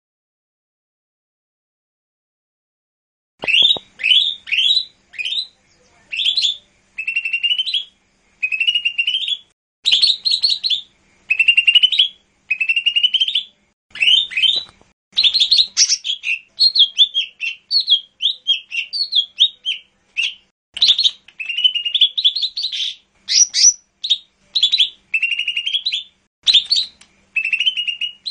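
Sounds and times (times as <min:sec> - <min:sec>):
bird song of short bright whistled phrases and rasping buzzy bursts: 0:03.4 - 0:28.3.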